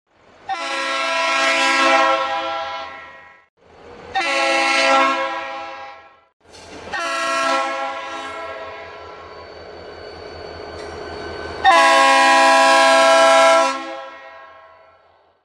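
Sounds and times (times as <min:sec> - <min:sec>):
train horn: 0:00.4 - 0:03.5, 0:04.1 - 0:09.2, 0:11.6 - 0:15.1.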